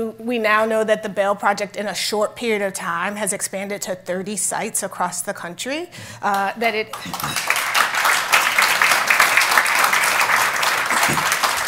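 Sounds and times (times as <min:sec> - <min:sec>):
speech: 0:00.0 - 0:07.7
applause: 0:06.9 - 0:11.6.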